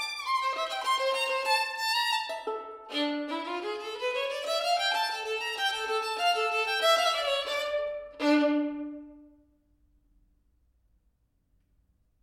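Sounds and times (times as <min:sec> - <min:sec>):
solo violin: 0:00.0 - 0:09.4.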